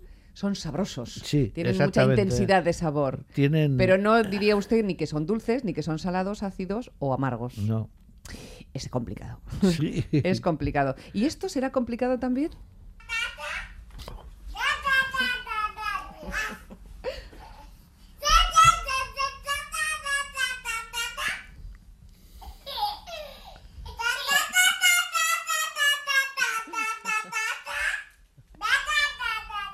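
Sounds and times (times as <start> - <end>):
speech: 0.4 - 12.8
two babies babbling to each other: 14.6 - 16.6, 17.4 - 21.6, 22.6 - 29.7
baby giggles and laughter: 22.5 - 28.0.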